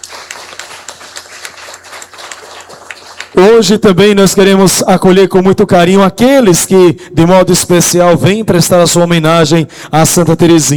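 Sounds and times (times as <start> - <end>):
audience applause: 0.0 - 3.4
speech: 3.3 - 10.7.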